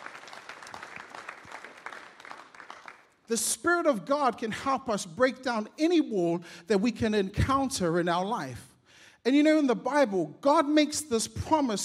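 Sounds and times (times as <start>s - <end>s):
audience applause: 0.0s - 3.2s
speech: 3.3s - 11.8s.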